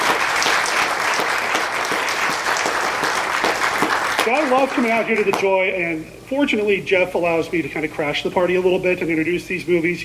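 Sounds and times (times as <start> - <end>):
cinema audience applauding: 0.0 - 5.5
speech: 4.3 - 10.0.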